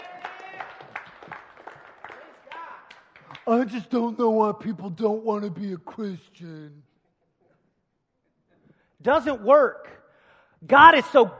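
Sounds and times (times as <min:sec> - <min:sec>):
audience clapping: 0:00.0 - 0:04.0
speech: 0:03.5 - 0:06.9, 0:09.0 - 0:10.0, 0:10.6 - 0:11.3.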